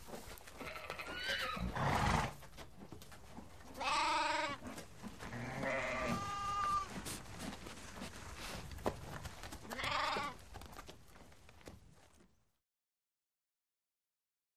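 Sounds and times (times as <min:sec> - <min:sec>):
horse whinnying: 0:00.6 - 0:02.5, 0:03.7 - 0:06.9, 0:09.7 - 0:10.4
sheep baaing: 0:03.7 - 0:06.9, 0:09.7 - 0:10.4.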